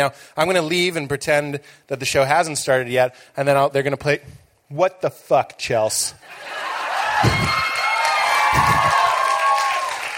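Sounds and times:
speech: 0.0s - 7.7s
scattered cheers: 6.4s - 10.1s
audience applause: 6.5s - 10.1s.

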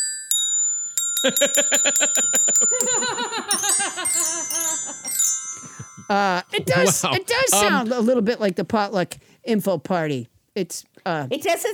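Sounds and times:
glockenspiel playing a melody: 0.0s - 7.6s
people laughing: 1.2s - 7.8s
speech: 1.2s - 11.7s.

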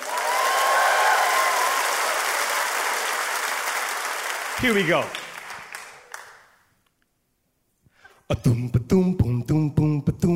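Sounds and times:
faint cheering: 0.0s - 2.9s
audience applause: 0.0s - 6.6s
speech: 4.6s - 5.2s, 8.3s - 9.8s.

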